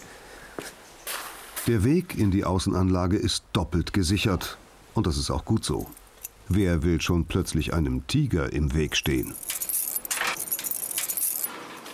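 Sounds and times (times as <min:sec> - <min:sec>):
speech: 0:01.7 - 0:09.6
keys jangling while unlocking enclosure door: 0:09.2 - 0:11.5.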